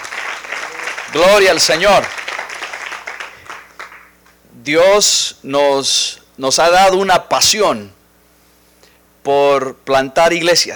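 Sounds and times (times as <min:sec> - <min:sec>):
audience applauding: 0:00.0 - 0:04.3
speech: 0:01.2 - 0:02.2, 0:04.7 - 0:08.0, 0:09.2 - 0:10.7.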